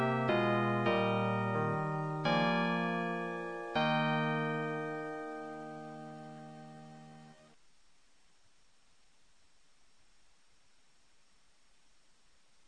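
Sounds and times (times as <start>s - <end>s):
national anthem lead melody: 0.0s - 7.5s.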